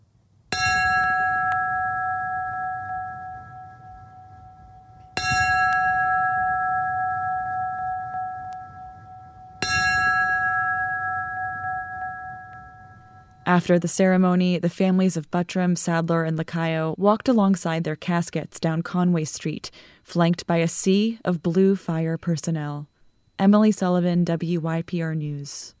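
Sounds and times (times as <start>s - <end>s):
fire bell rung for last alarm: 0.5s - 13.7s
speech: 13.5s - 25.7s.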